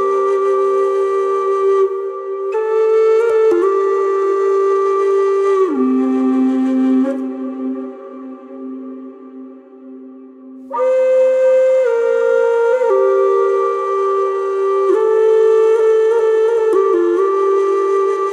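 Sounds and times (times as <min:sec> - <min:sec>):
Native flute music: 0:00.0 - 0:18.3.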